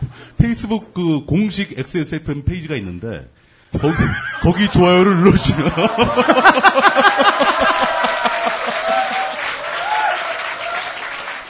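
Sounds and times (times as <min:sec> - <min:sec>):
speech: 0:00.4 - 0:08.2
laughter: 0:03.8 - 0:09.4
audience applause: 0:05.9 - 0:11.4.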